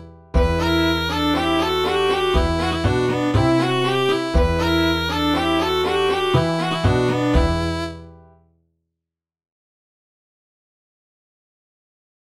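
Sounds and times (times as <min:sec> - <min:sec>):
bourree dance music: 0:00.4 - 0:07.9.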